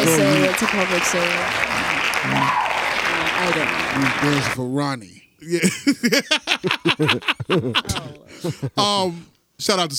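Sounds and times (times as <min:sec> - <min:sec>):
hand clapping: 0:00.0 - 0:04.6
speech: 0:00.1 - 0:02.7, 0:03.4 - 0:09.9
laughter: 0:05.5 - 0:08.9.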